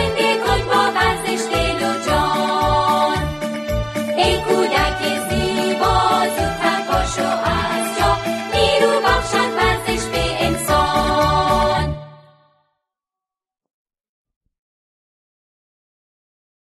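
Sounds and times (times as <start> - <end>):
happy children's song: 0.0 - 12.6.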